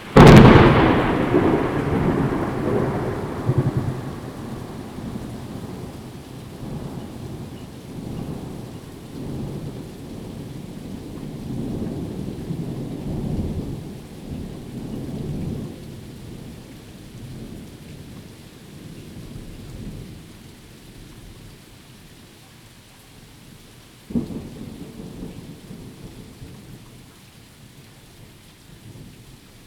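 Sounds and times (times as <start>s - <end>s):
thunderstorm: 0.0s - 20.2s, 24.1s - 26.9s.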